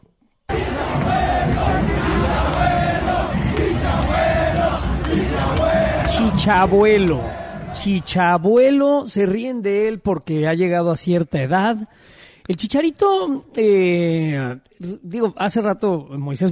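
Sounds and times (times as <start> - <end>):
stadium crowd chanting at a footballer: 0.5 - 8.6
speech: 6.2 - 16.4.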